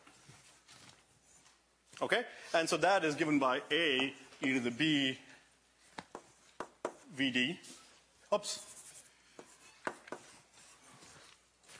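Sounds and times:
speech: 0:02.0 - 0:05.3, 0:07.2 - 0:08.7
writing an equation on the board during a lecture: 0:06.0 - 0:07.1, 0:08.6 - 0:11.3.

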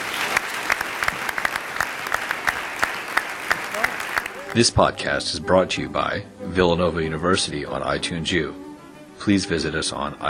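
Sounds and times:
audience applause: 0:00.0 - 0:04.6
speech: 0:04.5 - 0:08.6, 0:09.2 - 0:10.2.

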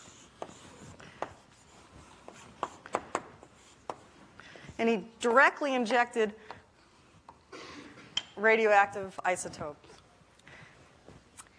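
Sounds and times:
little hamster being drawn on a board during a lecture: 0:00.0 - 0:04.3
speech: 0:04.8 - 0:06.5, 0:08.4 - 0:09.9.

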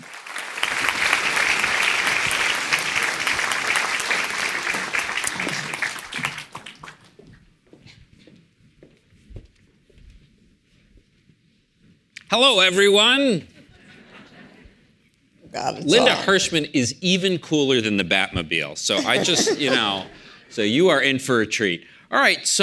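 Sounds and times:
audience applause welcoming guests: 0:00.0 - 0:07.2
speech: 0:12.4 - 0:13.5, 0:15.6 - 0:22.6
laughter: 0:13.7 - 0:14.8, 0:18.9 - 0:20.4.

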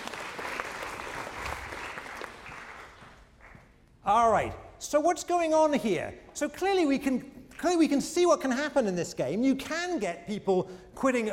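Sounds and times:
audience applause: 0:00.0 - 0:03.6
speech: 0:04.1 - 0:11.3.

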